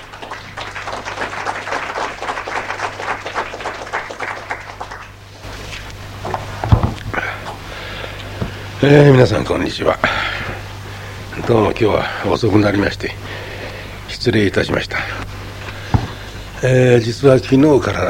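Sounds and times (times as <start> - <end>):
audience applause welcoming speaker: 0.0 - 5.3
speech: 8.8 - 10.3, 11.5 - 13.4, 14.2 - 15.2, 16.6 - 18.0.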